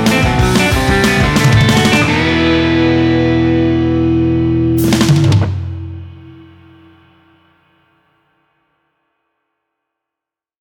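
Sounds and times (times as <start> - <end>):
jangly pop played on an archtop guitar: 0.0 - 6.4.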